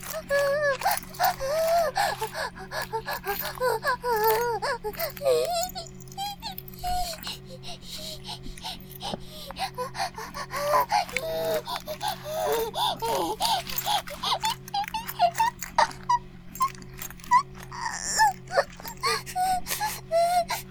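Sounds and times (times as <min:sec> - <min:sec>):
vibrator buzzing: 0:00.0 - 0:20.7.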